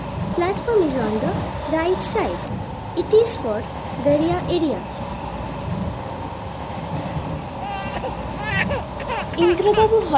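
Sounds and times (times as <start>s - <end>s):
moving train rumble: 0.0s - 10.1s
speech: 0.4s - 5.0s, 9.4s - 10.1s
baby crying in the next compartment of a train: 7.4s - 10.1s.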